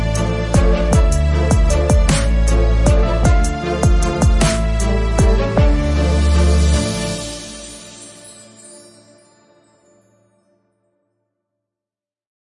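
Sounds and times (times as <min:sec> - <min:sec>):
romantic piano background music: 0:00.0 - 0:09.4.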